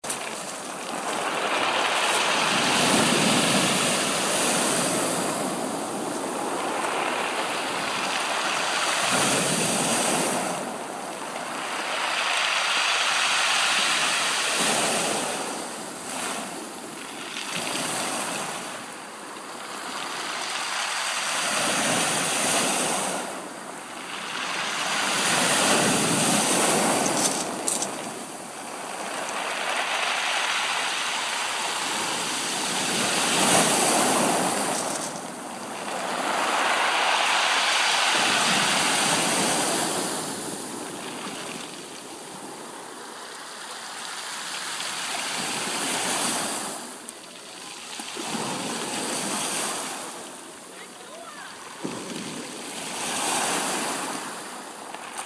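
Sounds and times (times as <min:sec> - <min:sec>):
beach ambience at Nice: 0:00.0 - 0:55.2.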